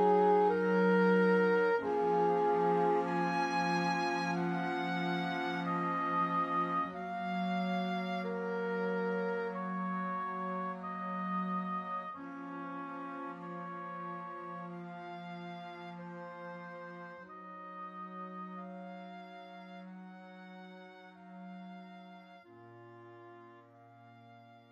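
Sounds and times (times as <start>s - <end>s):
romance horns: 0.0s - 24.7s.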